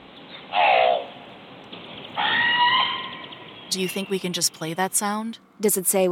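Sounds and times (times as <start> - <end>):
crow cawing: 0.5 - 1.1, 2.2 - 3.5
speech: 3.7 - 6.0.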